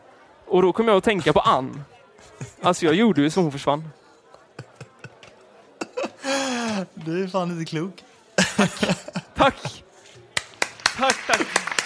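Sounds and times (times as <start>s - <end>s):
speech: 0.5s - 4.0s, 7.1s - 9.8s
laughter: 2.2s - 3.5s, 4.3s - 7.0s, 8.4s - 9.9s, 10.8s - 11.8s
applause: 10.4s - 11.8s.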